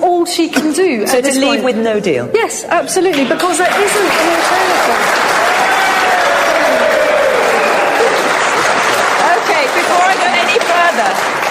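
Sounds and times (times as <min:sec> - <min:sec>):
speech: 0:00.2 - 0:05.4
audience cheering and applauding: 0:03.2 - 0:11.4.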